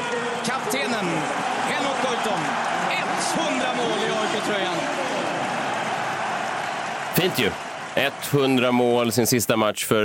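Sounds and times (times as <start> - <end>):
stadium crowd applauding and cheering: 0.0 - 9.4
speech: 0.4 - 5.4, 7.2 - 10.0.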